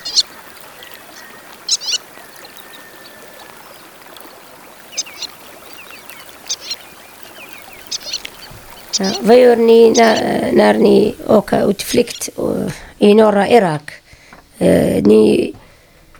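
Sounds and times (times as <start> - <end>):
White-tailed Lapwing calls: 0.0 - 12.4
steady rushing background: 4.9 - 13.7
speech: 9.0 - 14.0, 14.6 - 15.6.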